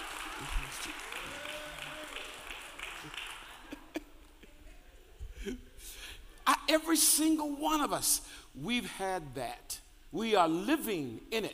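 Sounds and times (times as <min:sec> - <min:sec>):
audience clapping hands: 0:00.0 - 0:04.4
speech: 0:06.7 - 0:11.5.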